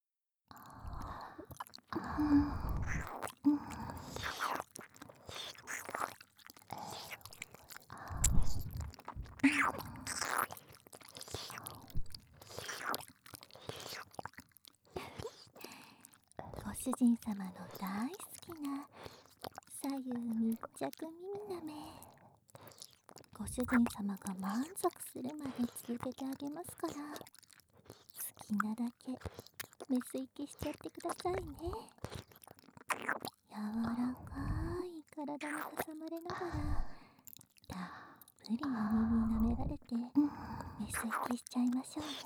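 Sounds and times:
ear licking in both ears: 0.6 - 42.2.

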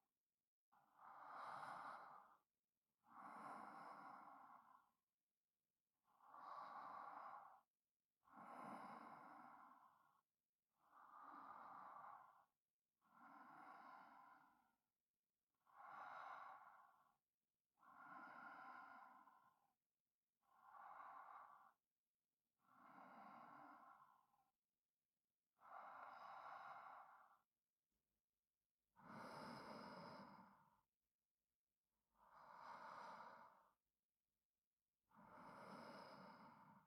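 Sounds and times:
sleeping breath for sleep aid: 1.0 - 2.5, 3.1 - 5.0, 6.1 - 7.7, 8.3 - 10.0, 10.9 - 12.5, 13.1 - 14.7, 15.7 - 17.2, 17.8 - 19.6, 22.7 - 24.3, 25.6 - 27.5, 29.0 - 30.8, 32.2 - 33.8, 35.1 - 36.8.

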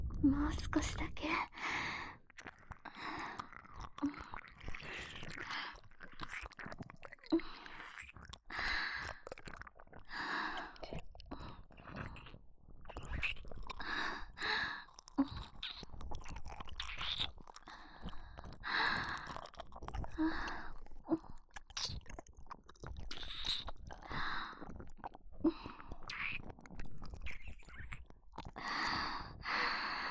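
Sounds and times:
oral sex sounds: 0.0 - 30.0
ear licking: 2.3 - 10.2, 11.8 - 25.2
nipple licking: 2.3 - 30.0.

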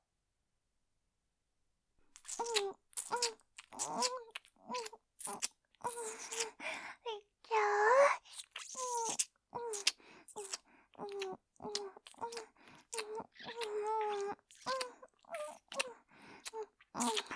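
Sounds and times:
good morning kiss ASMR sounds: 2.2 - 6.6, 8.0 - 17.3.

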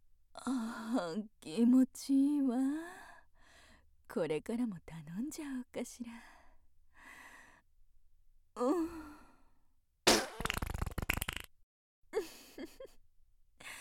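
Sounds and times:
speech: 0.4 - 3.0, 4.1 - 6.3, 8.6 - 9.0
fart: 10.1 - 11.5.

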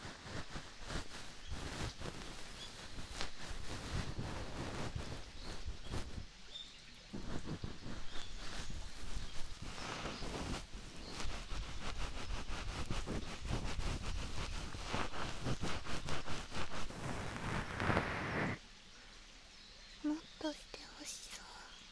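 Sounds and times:
ear cleaning with a bonten ASMR: 0.4 - 6.2, 7.2 - 18.6.

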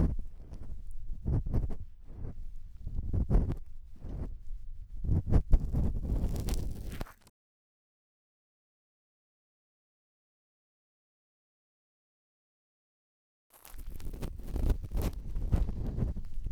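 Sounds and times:
bamboo ear pick scraping deep inside right ear: 0.0 - 7.3, 13.6 - 16.5.

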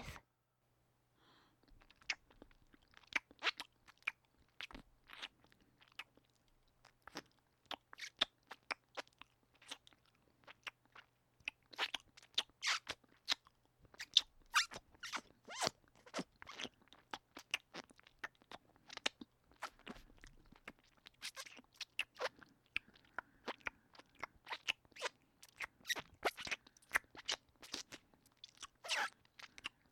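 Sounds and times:
ear licking sounds: 1.6 - 29.9.

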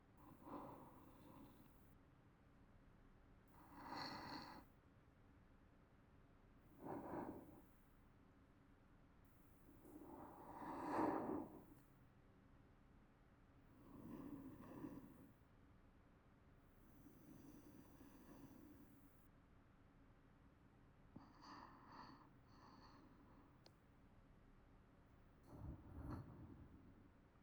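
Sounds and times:
sleeping breathing: 0.2 - 1.8, 3.6 - 4.6, 6.8 - 7.7, 9.8 - 11.8, 13.8 - 15.4, 16.9 - 19.0, 25.4 - 27.1.

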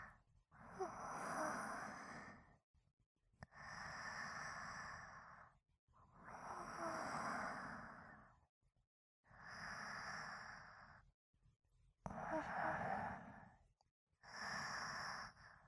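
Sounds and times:
sleeping breathing: 0.0 - 2.5, 3.5 - 5.6, 6.2 - 8.4, 9.4 - 11.0, 12.1 - 13.6, 14.2 - 15.6.

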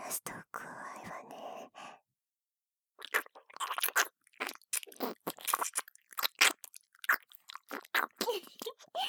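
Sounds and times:
wet mouth chewing at right ear: 3.0 - 9.0.

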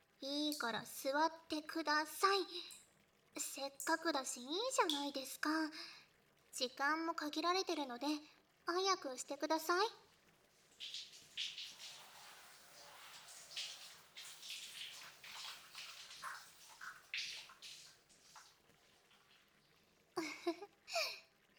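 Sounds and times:
speech: 0.2 - 2.8, 3.4 - 6.0, 6.6 - 10.0, 10.8 - 11.5
water splashing and trickling while someone's hair is washed: 10.4 - 20.2.

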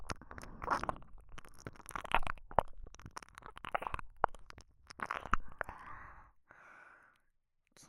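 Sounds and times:
ASMR ear licking sounds: 0.0 - 6.0.

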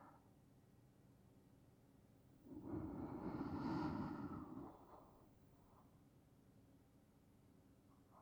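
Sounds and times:
sleeping breathing: 2.6 - 4.7.

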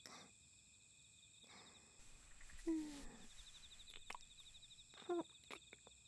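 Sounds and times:
kissing: 2.1 - 5.8.

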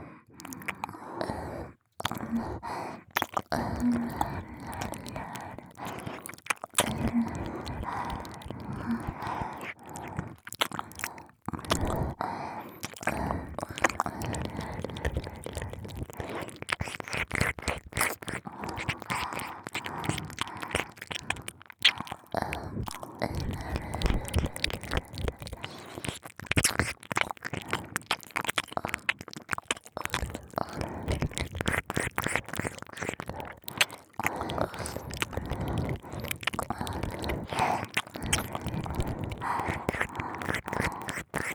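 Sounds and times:
licking both ears: 0.3 - 41.5.

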